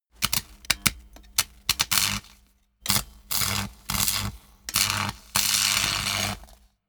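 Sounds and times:
spark: 0:01.4 - 0:06.7.

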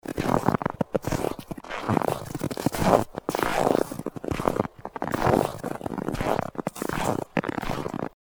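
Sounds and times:
footsteps in snow: 0:00.0 - 0:08.1.

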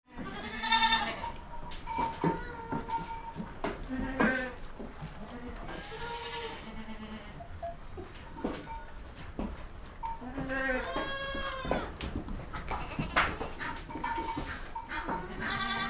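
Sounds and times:
goats bleating: 0:00.1 - 0:01.4, 0:02.2 - 0:03.1, 0:03.8 - 0:07.6, 0:10.0 - 0:15.8
clatter and shuffling: 0:01.3 - 0:06.0, 0:07.6 - 0:15.8.

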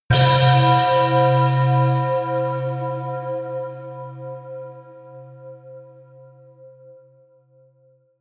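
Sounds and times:
bell punch: 0:00.1 - 0:04.6.

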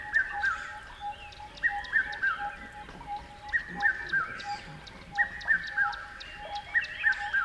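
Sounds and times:
bird calling at a river at dawn: 0:00.2 - 0:07.4.

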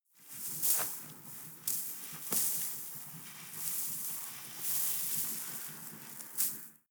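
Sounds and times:
snow trickling softly: 0:00.3 - 0:06.8.

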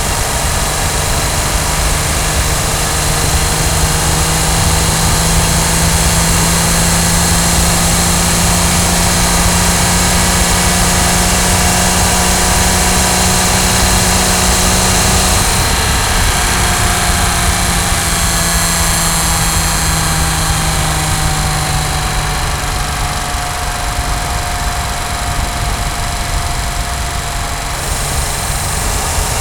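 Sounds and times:
Jaguar E-Type car driving with steady engine: 0:00.0 - 0:29.3.

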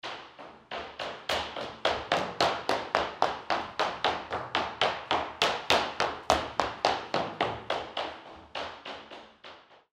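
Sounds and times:
steps on parquet floor: 0:00.0 - 0:09.8.

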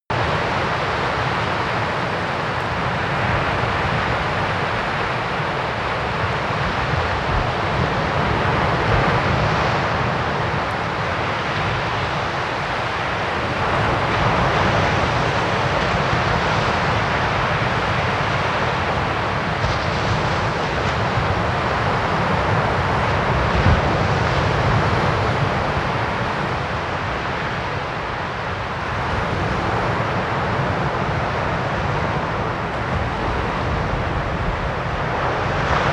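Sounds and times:
distant stormy sea: 0:00.1 - 0:35.9.

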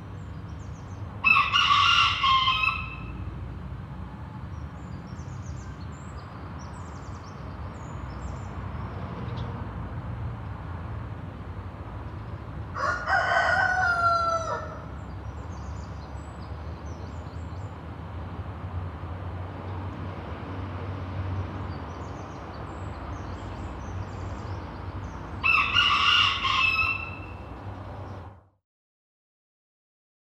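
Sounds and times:
road traffic noise: 0:00.0 - 0:28.6
rooster crowing: 0:01.2 - 0:03.2, 0:12.8 - 0:14.9, 0:25.4 - 0:27.4.

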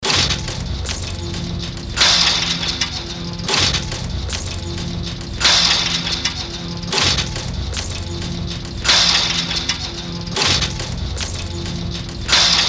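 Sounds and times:
musical effect loop: 0:00.1 - 0:12.5.

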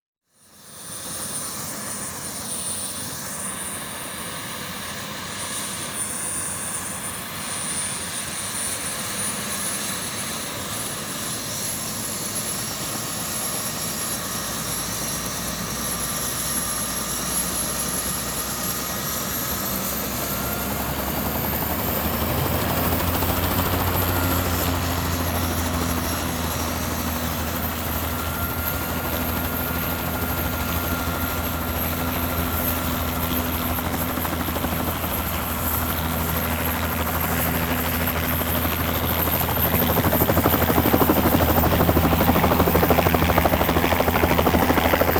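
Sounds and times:
helicopter starting: 0:11.9 - 0:45.1.

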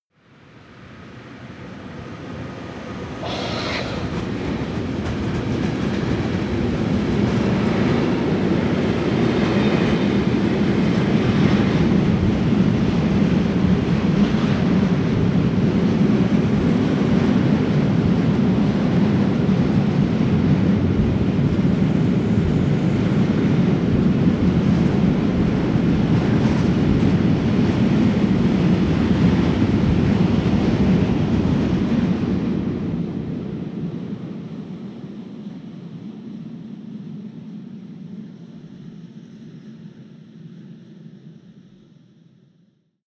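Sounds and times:
freight train driving by: 0:00.9 - 0:33.5.

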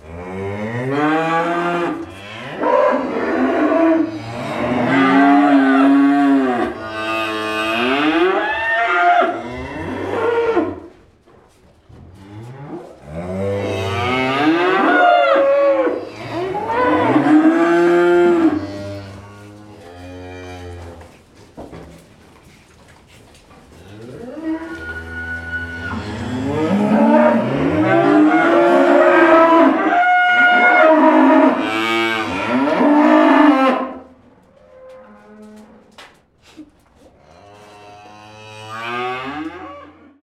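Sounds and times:
cattle mooing: 0:00.1 - 0:10.8, 0:12.7 - 0:21.0, 0:23.9 - 0:34.1.

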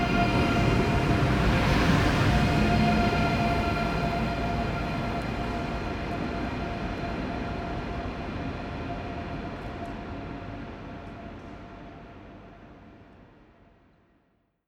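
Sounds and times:
high speed train departing: 0:00.0 - 0:10.3.

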